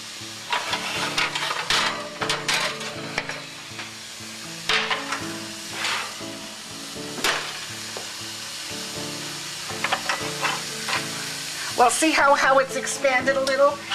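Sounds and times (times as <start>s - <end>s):
kasha grains sizzling as they sauté: 0.0s - 13.9s
spoon stirring kasha grains in a hot pan: 0.4s - 3.4s, 5.0s - 6.2s, 9.8s - 11.2s, 13.8s - 13.9s
speech: 11.8s - 13.9s.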